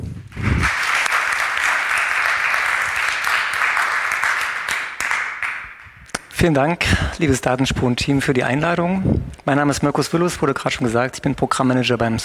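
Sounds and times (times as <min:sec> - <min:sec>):
audience clapping: 0:00.2 - 0:06.4
speech: 0:06.4 - 0:12.2.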